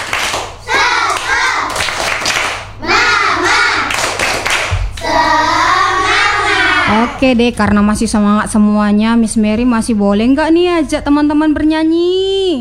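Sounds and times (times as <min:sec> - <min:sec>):
children's sharp rhythmic hand claps: 0:00.0 - 0:07.6
group of children chanting call-and-response in unison: 0:00.0 - 0:07.6
speech: 0:07.2 - 0:12.5.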